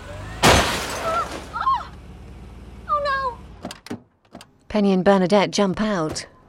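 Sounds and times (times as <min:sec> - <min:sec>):
car reversing into another car: 0:00.2 - 0:01.8
speech: 0:04.7 - 0:06.3.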